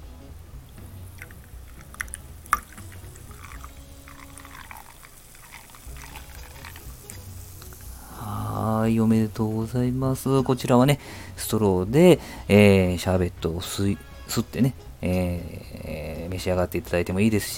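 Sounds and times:
Canada Dry ginger ale poured into a birthday cocktail: 0.6 - 10.5
speech: 8.9 - 17.5.

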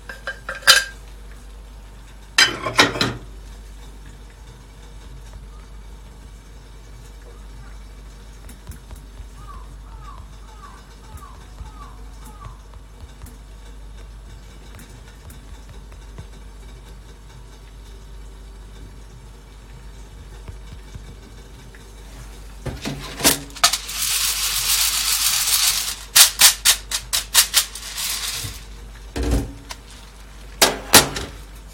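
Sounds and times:
low steady hum: 0.0 - 31.7
green Kilimanjaro blend coffee beans crackling while roasting: 6.7 - 17.9, 20.0 - 30.7.

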